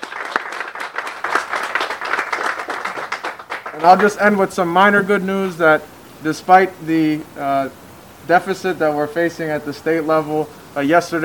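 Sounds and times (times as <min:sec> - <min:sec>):
audience round of applause: 0:00.0 - 0:04.6
speech: 0:03.8 - 0:11.2.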